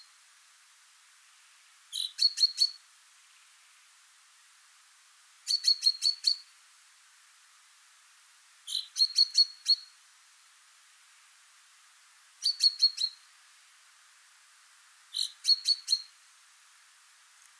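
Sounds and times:
common chaffinch Fringilla coelebs calling: 0:01.9 - 0:03.6, 0:05.4 - 0:06.6, 0:08.6 - 0:10.0, 0:12.4 - 0:13.3, 0:15.1 - 0:16.2.

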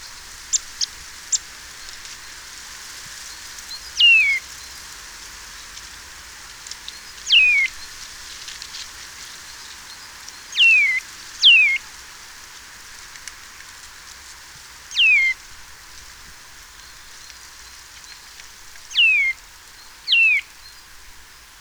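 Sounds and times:
Eurasian Nuthatch Sitta europaea calls: 0:00.0 - 0:02.3, 0:03.7 - 0:04.7, 0:06.8 - 0:08.0, 0:08.7 - 0:11.9, 0:14.9 - 0:15.4, 0:18.8 - 0:19.4, 0:20.0 - 0:20.8.

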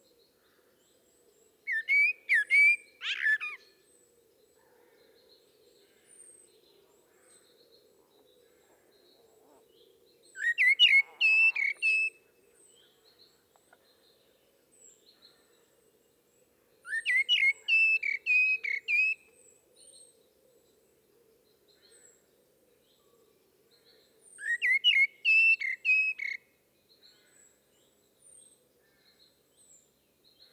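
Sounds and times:
common blackbird fluty whistled song: 0:01.6 - 0:03.7, 0:10.3 - 0:12.2, 0:16.8 - 0:20.0, 0:24.3 - 0:26.4.

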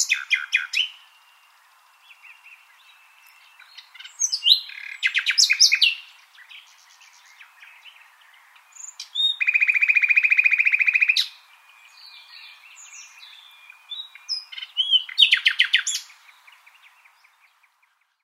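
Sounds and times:
common nightingale singing: 0:00.0 - 0:18.2.

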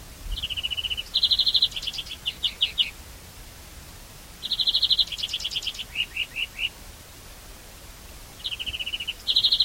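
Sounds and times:
European greenfinch Chloris chloris trilled calls: 0:00.4 - 0:02.9, 0:04.4 - 0:06.7, 0:08.4 - 0:09.6.

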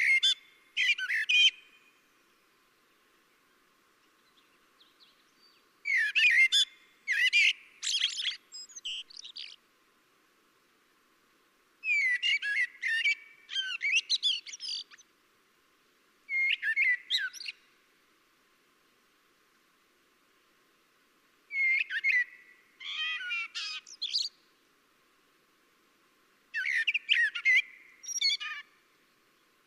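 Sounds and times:
common blackbird (Turdus merula) chirping: 0:00.0 - 0:02.5, 0:03.3 - 0:09.6, 0:11.8 - 0:15.1, 0:16.3 - 0:17.7, 0:21.5 - 0:24.5, 0:26.5 - 0:29.5.

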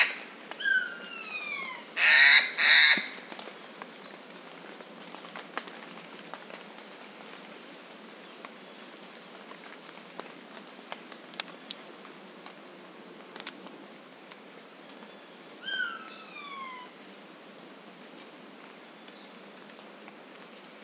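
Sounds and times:
Eurasian jay tonal calls, Garrulus glandarius: 0:00.0 - 0:03.3, 0:15.6 - 0:17.0.

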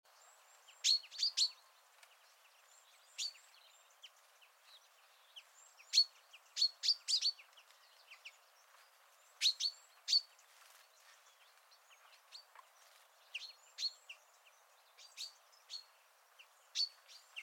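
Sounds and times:
common chaffinch Fringilla coelebs giving short sharp high chirps: 0:00.1 - 0:17.4.

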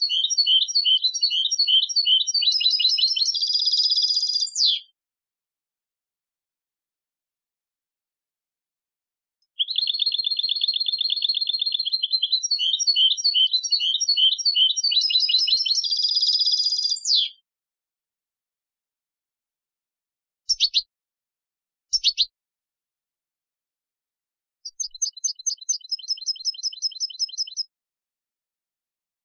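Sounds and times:
European goldfinch twittering: 0:00.0 - 0:04.8, 0:09.5 - 0:17.4, 0:20.5 - 0:20.9, 0:21.9 - 0:22.3, 0:24.6 - 0:27.7.

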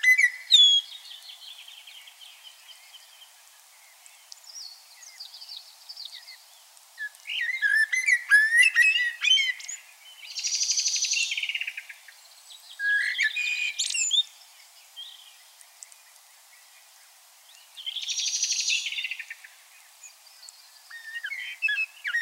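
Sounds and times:
common blackbird song: 0:00.0 - 0:22.1.

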